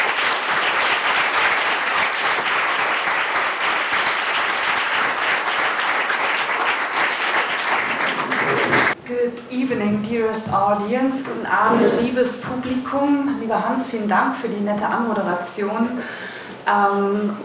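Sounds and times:
audience applause: 0.0 - 9.0
speech: 10.3 - 17.4.

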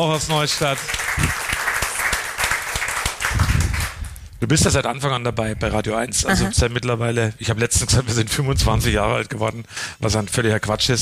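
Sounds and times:
speech: 0.0 - 1.4, 4.4 - 11.0
audience applause: 0.0 - 4.1.

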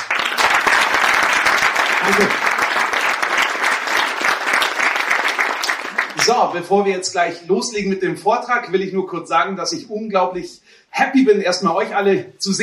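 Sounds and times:
crowd applause: 0.0 - 6.6
speech: 2.1 - 2.5, 6.3 - 12.6.

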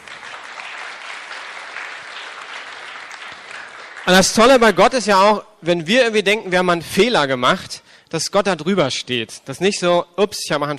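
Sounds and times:
audience clapping: 0.0 - 4.8
speech: 4.1 - 10.7.

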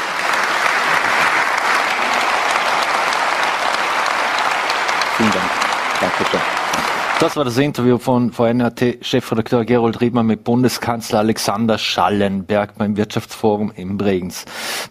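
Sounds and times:
audience applause: 0.0 - 7.5
speech: 7.2 - 14.8.

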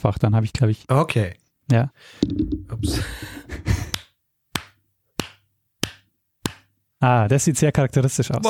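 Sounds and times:
speech: 0.0 - 3.7, 7.0 - 8.4
laughter: 2.8 - 4.0
hand clapping: 3.8 - 6.7.

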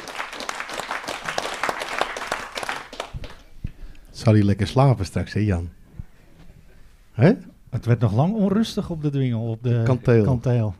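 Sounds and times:
audience applause: 0.0 - 3.4
speech: 4.2 - 5.8, 7.2 - 10.7.

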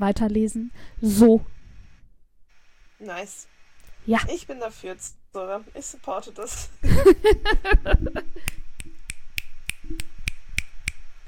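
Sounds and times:
speech: 0.0 - 1.6, 3.0 - 8.6
finger snaps: 8.4 - 11.0.

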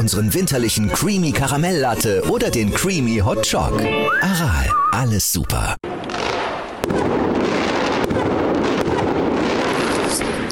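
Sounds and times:
speech: 0.0 - 6.1
fireworks set off outside: 5.8 - 10.5.

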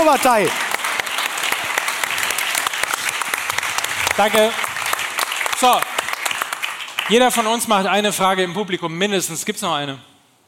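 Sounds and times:
audience applause: 0.0 - 7.7
speech: 0.1 - 0.8, 4.2 - 4.6, 5.6 - 5.9, 7.1 - 10.1.

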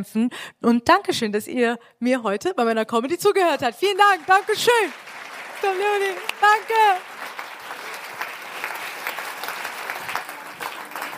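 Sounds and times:
speech: 0.0 - 7.2
audience applause: 3.8 - 11.1.

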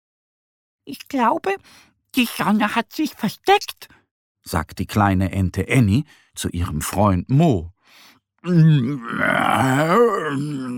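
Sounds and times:
speech: 0.9 - 10.7
voice imitating a bear's yawn: 8.5 - 10.7.

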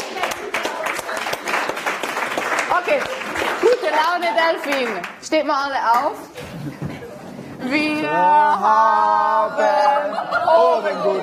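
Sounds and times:
audience applause at a German-language event: 0.0 - 5.2
speech: 2.8 - 6.8, 7.6 - 11.2
laughter: 6.3 - 7.6, 9.2 - 11.2.

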